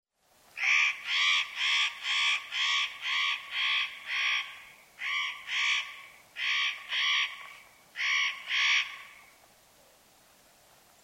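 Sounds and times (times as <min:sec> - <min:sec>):
spotted nutcracker harsh rasping calls: 0:00.6 - 0:09.3.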